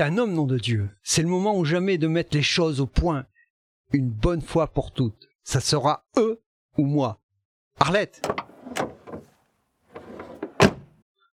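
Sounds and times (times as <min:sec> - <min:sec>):
speech: 0:00.0 - 0:03.3, 0:03.9 - 0:07.2, 0:07.8 - 0:08.8
car door slammed shut: 0:08.2 - 0:09.3, 0:10.0 - 0:10.9.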